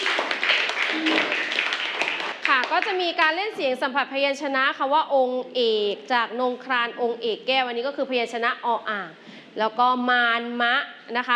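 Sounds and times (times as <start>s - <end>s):
classroom applause: 0.0s - 3.0s
speech: 2.6s - 11.3s.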